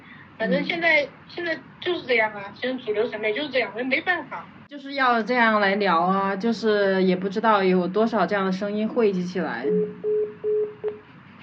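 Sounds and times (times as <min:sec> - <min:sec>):
speech: 0:00.4 - 0:10.2
phone busy tone after call hung up: 0:09.7 - 0:11.0.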